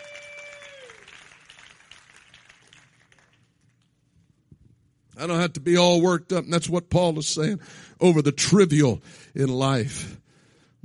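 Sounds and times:
audience clapping hands: 0:00.0 - 0:04.2
speech: 0:05.2 - 0:10.2.

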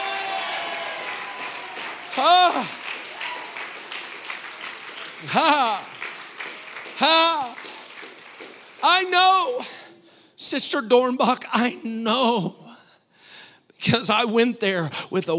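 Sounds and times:
people shouting: 0:00.0 - 0:03.6
crowd clapping: 0:00.0 - 0:09.6
speech: 0:05.2 - 0:05.9, 0:09.0 - 0:09.7, 0:10.5 - 0:12.6, 0:13.8 - 0:15.3.

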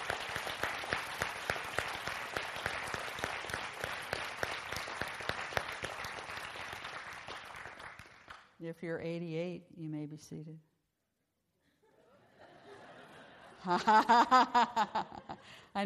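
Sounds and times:
crowd applause: 0:00.0 - 0:08.4
speech: 0:08.7 - 0:10.7, 0:13.6 - 0:15.8
laughter: 0:11.8 - 0:15.5.

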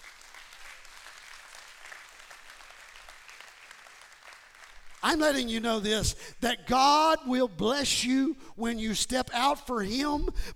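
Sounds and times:
audience applause, hand clapping: 0:00.0 - 0:05.8
speech: 0:05.0 - 0:10.5.

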